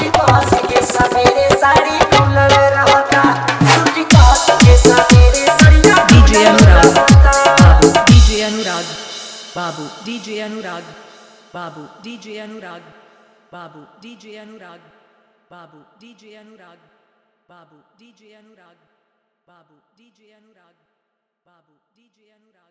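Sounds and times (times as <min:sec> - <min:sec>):
dholak with hard bass: 0:00.0 - 0:11.6.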